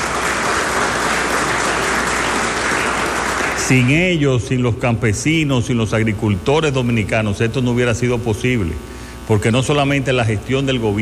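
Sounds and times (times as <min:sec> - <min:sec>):
audience applause: 0:00.0 - 0:04.2
speech: 0:03.7 - 0:11.0.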